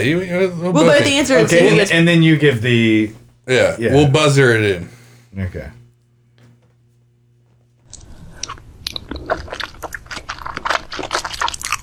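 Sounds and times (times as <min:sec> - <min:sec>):
speech: 0:00.0 - 0:05.8
laughter: 0:00.7 - 0:02.5
mukbang wet chewing and biting: 0:07.9 - 0:11.8.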